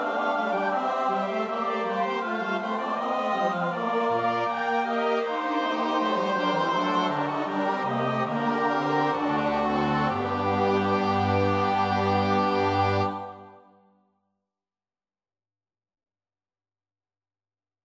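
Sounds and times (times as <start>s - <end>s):
soprano alto tenor bass voices: 0.0s - 13.6s.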